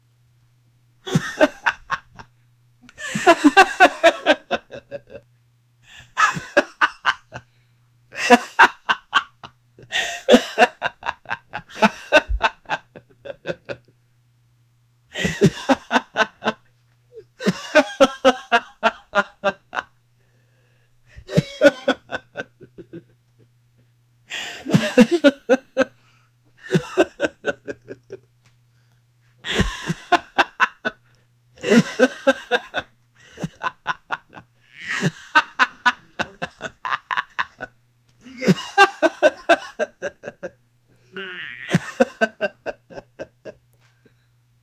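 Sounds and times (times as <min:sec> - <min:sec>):
22-year-old man laughing: 0:01.1 - 0:02.3, 0:02.9 - 0:05.2, 0:05.9 - 0:07.4, 0:08.1 - 0:13.9, 0:15.1 - 0:16.6, 0:17.2 - 0:19.9, 0:21.1 - 0:23.2, 0:24.3 - 0:25.9, 0:26.6 - 0:28.3, 0:29.4 - 0:31.0, 0:31.6 - 0:43.6.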